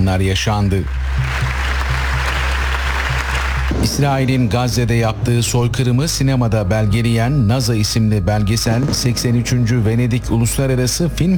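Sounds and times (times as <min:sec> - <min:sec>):
speech: 0:00.0 - 0:01.5, 0:03.7 - 0:11.3
applause at a documentary premiere at the Venice International Film Festival: 0:00.7 - 0:05.0
low rhythmic pulsing tone: 0:00.8 - 0:11.3.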